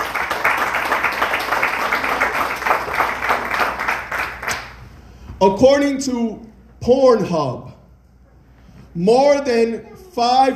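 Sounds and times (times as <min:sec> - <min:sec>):
audience applause: 0:00.0 - 0:04.7
speech: 0:05.4 - 0:07.7, 0:09.0 - 0:10.5.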